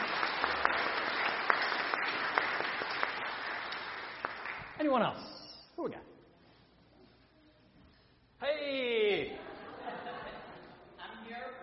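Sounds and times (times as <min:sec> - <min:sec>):
audience applause: 0:00.0 - 0:04.8
speech: 0:04.8 - 0:06.1
laughter: 0:09.2 - 0:11.0.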